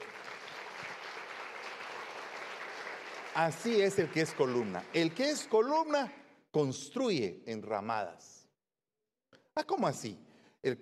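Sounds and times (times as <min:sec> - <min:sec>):
crowd applause: 0:00.0 - 0:05.7
speech: 0:03.4 - 0:08.4, 0:09.6 - 0:10.8.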